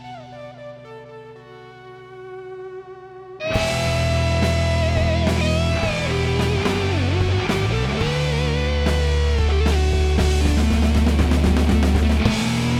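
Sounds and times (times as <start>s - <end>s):
guitars: 2.6s - 12.7s.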